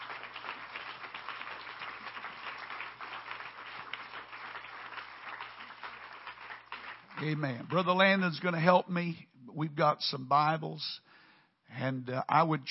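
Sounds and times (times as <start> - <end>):
church audience applauding: 0.0 - 8.2
speech: 7.2 - 11.0, 11.7 - 12.6.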